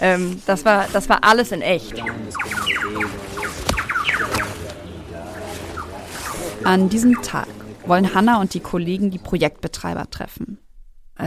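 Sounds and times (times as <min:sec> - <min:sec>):
speech: 0:00.0 - 0:03.3, 0:06.6 - 0:10.6
tropical rainforest ambience: 0:00.0 - 0:09.4
birds calling in a tropical rainforest: 0:00.8 - 0:09.4.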